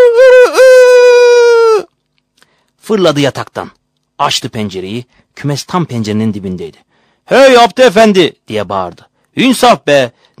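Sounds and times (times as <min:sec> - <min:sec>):
large Indian-breed rooster crowing from a coop in Beşiktaş: 0:00.0 - 0:01.9
speech: 0:02.9 - 0:10.3.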